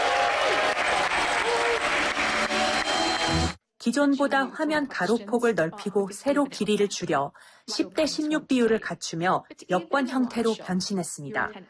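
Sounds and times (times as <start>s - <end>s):
large audience cheering and applause at product launch: 0.0s - 3.6s
speech: 3.9s - 11.6s.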